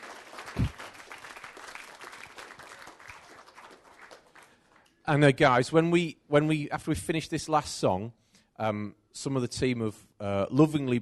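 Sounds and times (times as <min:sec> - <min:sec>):
crowd applauding: 0:00.0 - 0:04.9
speech: 0:05.1 - 0:11.0.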